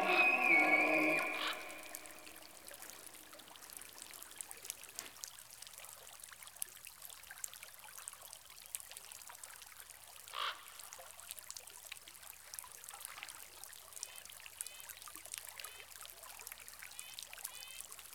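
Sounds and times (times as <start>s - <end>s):
elk in rainforest: 0.0s - 2.4s.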